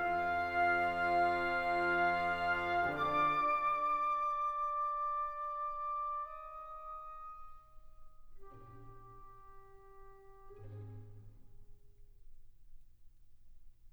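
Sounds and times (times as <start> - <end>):
orchestra playing a divertimento: 0.0 - 7.5, 8.4 - 11.8.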